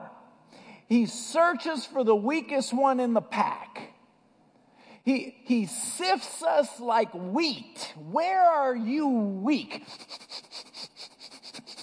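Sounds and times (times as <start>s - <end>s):
speech: 0.9s - 3.9s, 5.0s - 10.4s
person imitating dog sniffing: 9.7s - 11.8s.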